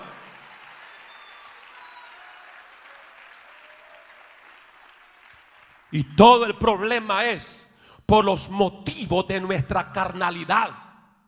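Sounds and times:
audience applauding: 0.0 - 6.0
speech: 5.9 - 10.8.

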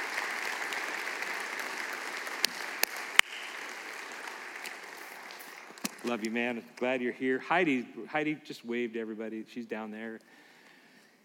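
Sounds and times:
church congregation clapping welcoming a former pastor: 0.0 - 7.0
speech: 6.0 - 10.4.

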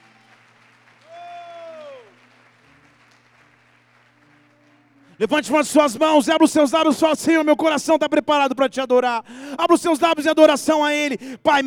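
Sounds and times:
audience applauding: 0.0 - 5.2
speech: 5.2 - 11.6.

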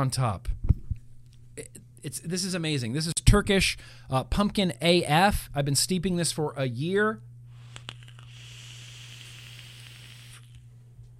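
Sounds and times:
speech: 0.0 - 0.5, 1.6 - 7.3
vape coil firing on RDA dripper, sizzling and crackling: 7.6 - 10.7.

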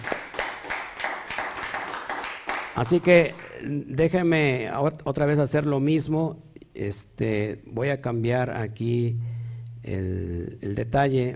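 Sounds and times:
crowd applauding: 0.0 - 3.5
speech: 2.8 - 11.3.

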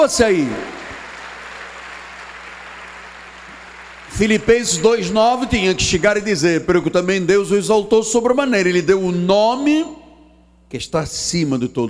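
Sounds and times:
speech: 0.0 - 0.8, 4.2 - 10.0, 10.7 - 11.8
audience applauding: 0.0 - 5.6
low electrical hum: 0.0 - 11.8.

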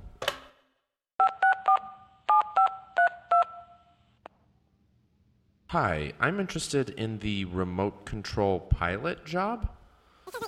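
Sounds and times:
telephone number dialed on keypad with touch tones: 1.2 - 3.7
speech: 5.7 - 10.4.

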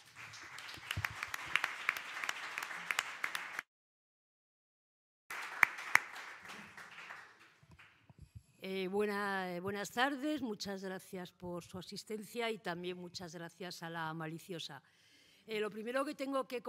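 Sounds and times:
audience applause: 0.0 - 3.7, 5.3 - 7.9
speech: 8.7 - 16.6.

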